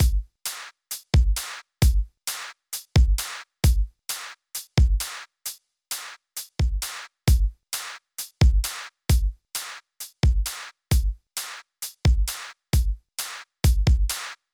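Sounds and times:
soft boom chuck rhythm: 0.0 - 0.3, 1.0 - 2.1, 3.0 - 3.9, 4.8 - 5.1, 8.4 - 9.4, 10.2 - 11.2, 12.1 - 13.0, 13.6 - 14.2.

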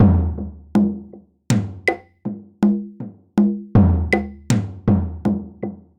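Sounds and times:
drum intro: 0.0 - 0.9, 1.5 - 2.0, 3.8 - 5.4.

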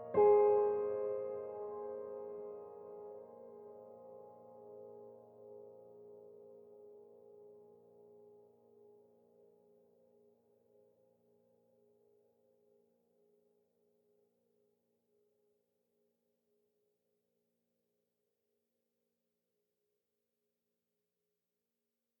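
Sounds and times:
piano phrase: 0.0 - 8.4.

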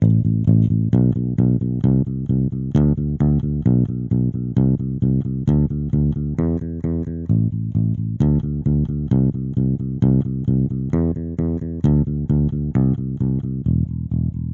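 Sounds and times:
electric bass: 0.0 - 14.5.

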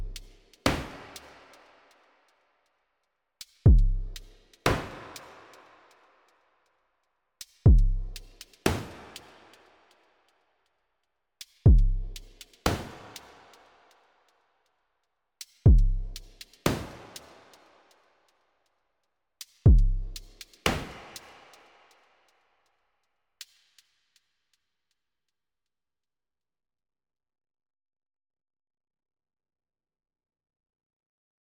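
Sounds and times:
drums: 0.0 - 2.0, 3.4 - 6.3, 7.4 - 10.2, 11.4 - 14.0, 15.4 - 18.1, 19.4 - 22.3, 23.4 - 24.2.

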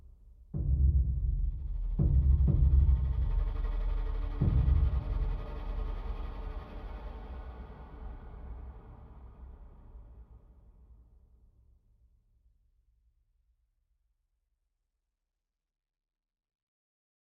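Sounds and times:
string instrument: 0.6 - 11.0.

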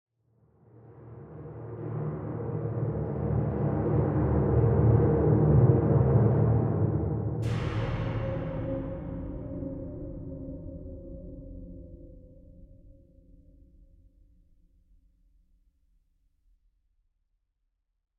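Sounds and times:
spooky ship ambience: 2.9 - 12.5.

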